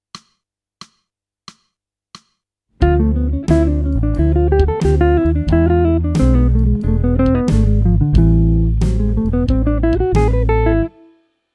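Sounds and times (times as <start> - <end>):
jazz music: 2.8 - 11.0.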